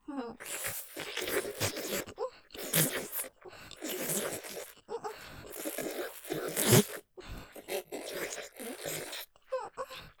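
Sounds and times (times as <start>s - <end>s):
intense vacuum sucking sounds: 0.4s - 9.4s.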